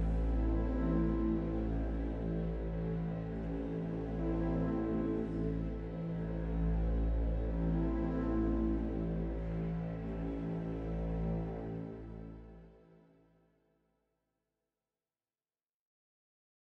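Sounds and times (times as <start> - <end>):
mystic forest pond music: 0.0 - 12.5.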